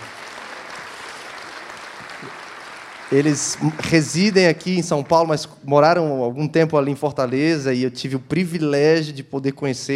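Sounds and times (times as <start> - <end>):
audience applause: 0.0 - 5.3
speech: 2.2 - 2.4, 3.1 - 9.9.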